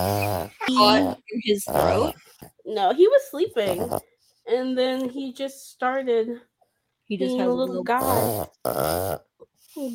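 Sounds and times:
old dog snoring with laboured breathing: 0.0s - 2.4s, 3.6s - 4.1s, 7.9s - 9.4s
speech: 0.0s - 6.5s, 7.1s - 9.9s.

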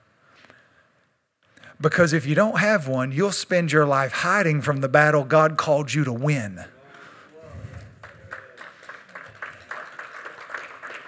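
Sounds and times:
speech: 1.8s - 6.8s
audience clapping: 7.7s - 11.0s.

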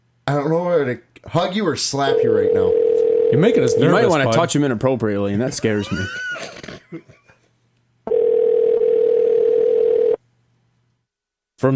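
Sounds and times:
speech: 0.4s - 7.1s
telephone dial tone: 2.7s - 3.4s, 8.1s - 10.2s.

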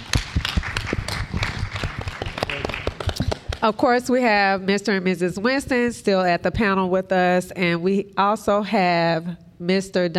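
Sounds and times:
scattered applause from a small audience greeting panel guests: 0.0s - 3.6s
speech: 3.6s - 10.1s.

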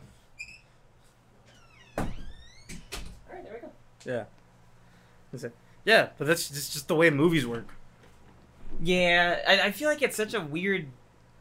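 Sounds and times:
door shutting: 1.5s - 3.3s
speech: 4.0s - 4.4s, 5.3s - 7.8s, 8.8s - 11.3s.

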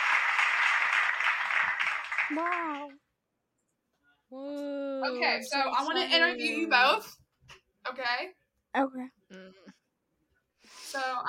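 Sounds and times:
audience clapping for guest: 0.0s - 3.0s
speech: 2.3s - 3.1s, 4.3s - 7.2s, 7.9s - 9.8s, 10.9s - 11.2s.

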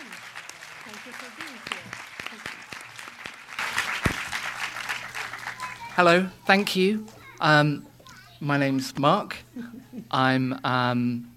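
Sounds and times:
audience applause: 0.0s - 6.7s
speech: 0.9s - 2.8s, 6.0s - 11.3s.

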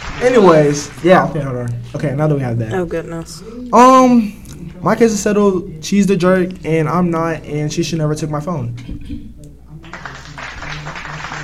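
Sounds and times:
crowd applause sound effect: 0.0s - 1.1s, 9.8s - 11.4s
speech: 0.2s - 9.3s.

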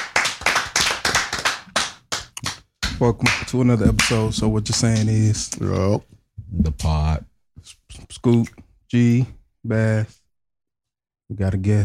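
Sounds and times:
hand clapping: 0.0s - 5.2s
speech: 3.0s - 10.2s, 11.3s - 11.8s.

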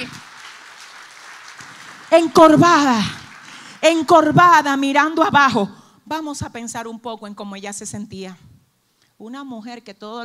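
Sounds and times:
audience applause: 0.0s - 4.1s
speech: 2.1s - 3.2s, 3.8s - 8.5s, 9.2s - 10.2s.

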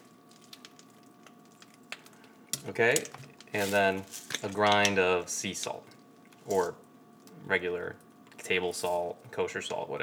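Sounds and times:
cereal snapping, crackling and popping: 0.0s - 9.1s
speech: 2.6s - 6.8s, 7.5s - 10.0s.

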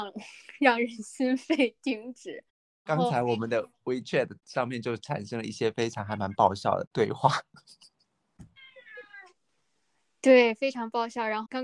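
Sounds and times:
speech: 0.0s - 7.9s, 10.2s - 11.6s
cat meowing: 8.5s - 9.4s.

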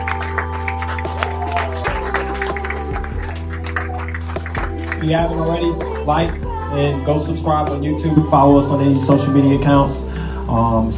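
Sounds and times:
audience round of applause: 0.0s - 6.5s
speech: 5.0s - 10.9s.

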